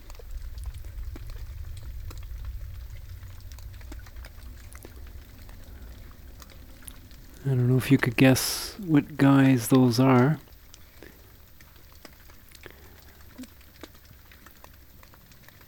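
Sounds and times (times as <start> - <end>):
steady low rumble: 0.0 - 9.2
crustaceans crackling underwater: 0.0 - 15.6
speech: 7.4 - 10.5.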